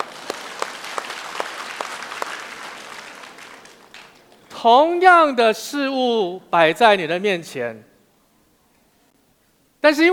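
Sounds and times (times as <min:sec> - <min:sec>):
audience applause: 0:00.0 - 0:04.4
speech: 0:04.6 - 0:07.9, 0:09.8 - 0:10.1.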